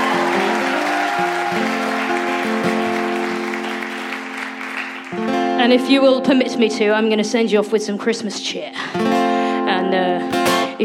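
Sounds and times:
audience applause: 0.0 - 5.5
speech: 5.6 - 9.1, 9.9 - 10.8.

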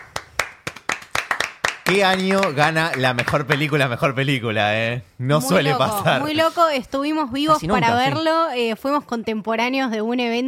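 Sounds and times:
applause: 0.0 - 4.0
speech: 1.9 - 10.4
laughter: 5.4 - 6.6, 7.5 - 8.2.

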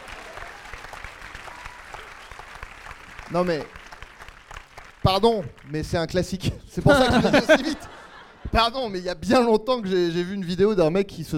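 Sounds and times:
audience applause: 0.0 - 6.0
speech: 3.3 - 3.8, 5.1 - 11.3
laughter: 6.8 - 9.0.

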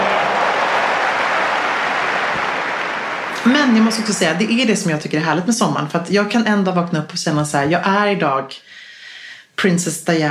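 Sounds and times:
Wimbledon-style applause sound effect: 0.0 - 4.7
speech: 3.4 - 8.8, 9.6 - 10.2.

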